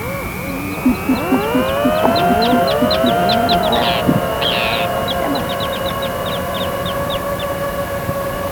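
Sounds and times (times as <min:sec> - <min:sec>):
birds: 0:00.0 - 0:08.5.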